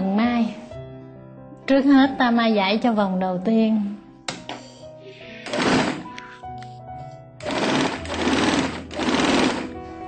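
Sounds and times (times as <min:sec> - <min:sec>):
speech: 0:01.7 - 0:04.0
sewing machine stitching fabric: 0:05.5 - 0:06.0, 0:07.4 - 0:09.7.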